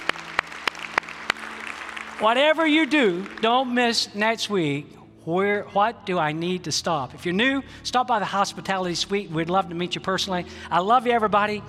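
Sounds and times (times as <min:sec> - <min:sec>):
audience clapping in unison: 0:00.0 - 0:04.0
speech: 0:02.2 - 0:11.6.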